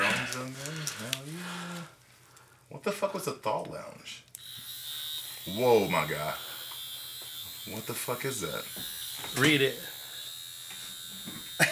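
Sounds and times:
speech: 2.8s - 4.3s, 5.5s - 6.5s, 7.6s - 9.9s
vibrating electric eye massager buzzing: 4.4s - 11.7s.

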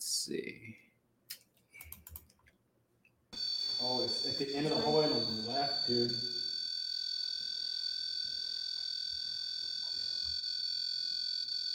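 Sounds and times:
speech: 0.2s - 0.8s, 5.9s - 6.3s
REM pod ghost-hunting sensor alarm tone: 3.4s - 11.7s.

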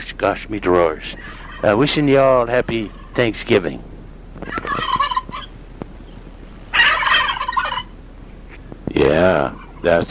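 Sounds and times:
speech: 0.2s - 4.9s, 9.0s - 10.1s
turkey gobbling: 0.8s - 3.8s, 4.4s - 10.1s.

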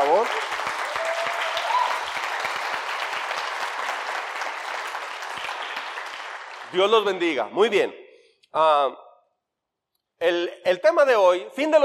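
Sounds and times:
audience applause: 0.0s - 7.3s
speech: 6.7s - 9.0s, 10.2s - 11.8s.

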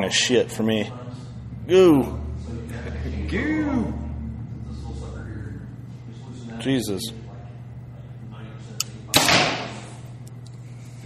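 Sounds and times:
speech: 0.1s - 1.0s, 1.7s - 2.2s, 3.3s - 4.0s, 6.6s - 7.2s
arrow shot from a bow: 9.2s - 9.8s.

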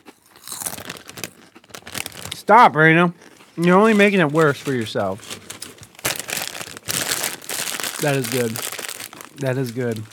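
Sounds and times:
person crunching a snack: 0.0s - 2.5s, 3.1s - 10.1s
speech: 2.4s - 5.3s, 8.0s - 8.7s, 9.4s - 10.1s.

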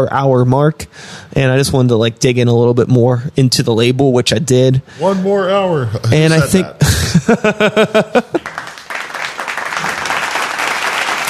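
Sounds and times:
speech: 0.0s - 8.6s
laughter: 6.3s - 8.8s
applause from a studio audience: 8.2s - 11.2s.

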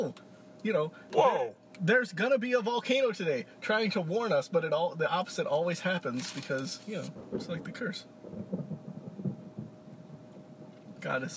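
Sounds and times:
speech: 0.0s - 8.6s, 11.0s - 11.3s
thunder: 7.1s - 10.8s.

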